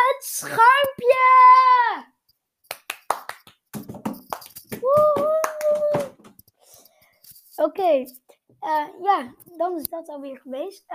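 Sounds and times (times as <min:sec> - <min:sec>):
speech: 0:00.2 - 0:01.0, 0:07.7 - 0:10.9
hand claps: 0:02.7 - 0:06.4.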